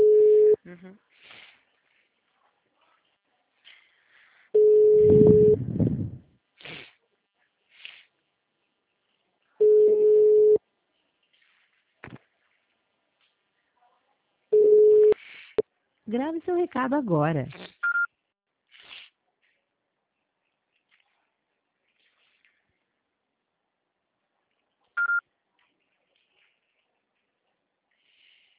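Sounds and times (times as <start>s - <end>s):
telephone line tone beeps: 0.0s - 0.6s, 4.6s - 5.6s, 9.6s - 10.6s, 14.6s - 15.2s, 25.0s - 25.2s
speech: 16.1s - 17.6s.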